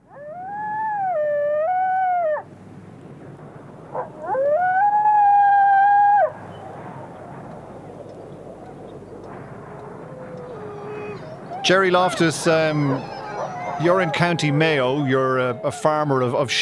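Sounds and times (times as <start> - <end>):
wolf howling: 0.0 - 2.5, 3.9 - 6.4, 9.6 - 15.9
speech: 11.7 - 13.2, 13.8 - 16.6.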